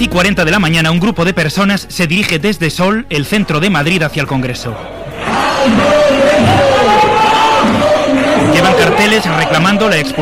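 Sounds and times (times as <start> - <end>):
speech: 0.0 - 6.7, 8.5 - 10.1
crowd of protesters shouting: 4.9 - 10.1.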